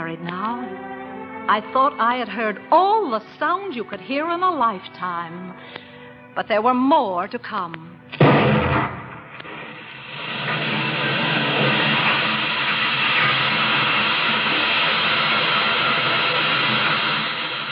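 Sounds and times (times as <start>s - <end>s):
speech: 0.1s - 8.8s
blast: 8.2s - 17.7s
oil well drill: 9.4s - 17.7s
rich black oil gushing from the red soil of Oklahoma: 9.4s - 17.7s
oil well pump: 9.6s - 17.7s.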